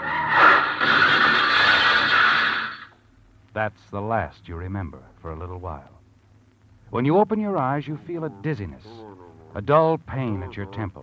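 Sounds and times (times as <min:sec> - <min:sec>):
car tires squealing on a sharp corner, radio drama sound effect: 0:00.0 - 0:02.9
speech: 0:03.6 - 0:06.0, 0:06.9 - 0:11.0.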